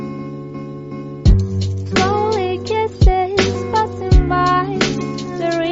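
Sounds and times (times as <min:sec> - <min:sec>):
cute aesthetic intro music: 0:01.3 - 0:05.6.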